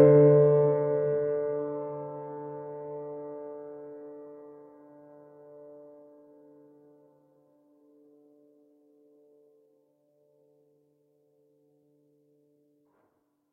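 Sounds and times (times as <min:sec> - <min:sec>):
acoustic piano: 0:00.0 - 0:07.1.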